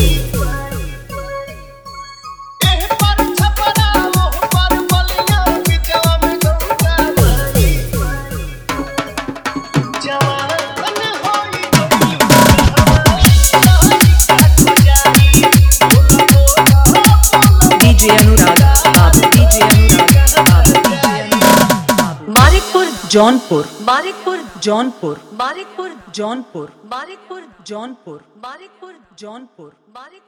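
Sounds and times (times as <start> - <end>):
dholak drumming in a hard bass mix: 0.0 - 1.2, 2.6 - 25.6.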